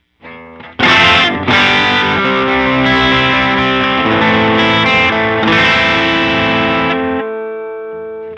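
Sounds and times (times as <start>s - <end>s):
tube delay effect: 0.7s - 7.3s.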